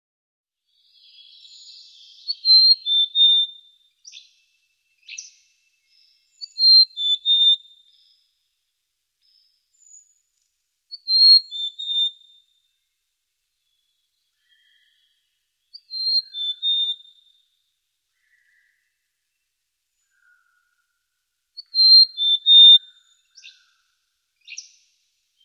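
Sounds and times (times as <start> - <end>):
bird song of high whistled phrases: 0.7 - 8.2, 9.2 - 10.1, 10.9 - 12.6, 13.6 - 17.4, 21.6 - 23.8, 24.4 - 25.4.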